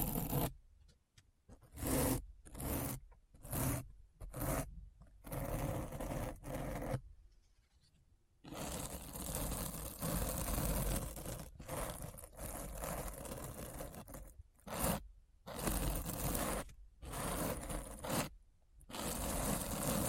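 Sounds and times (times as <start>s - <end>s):
rapid scratching: 1.7s - 7.0s, 8.5s - 18.3s, 18.9s - 20.0s.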